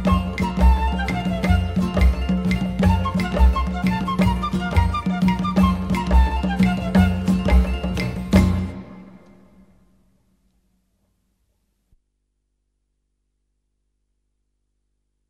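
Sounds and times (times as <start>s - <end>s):
guaracha music: 0.0s - 9.9s.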